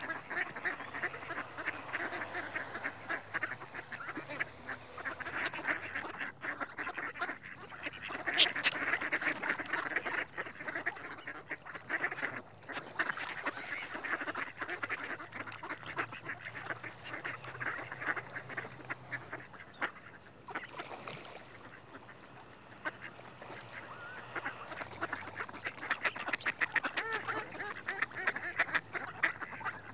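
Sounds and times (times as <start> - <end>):
male Mallard Anas platyrhynchos calling: 0.0 - 29.9.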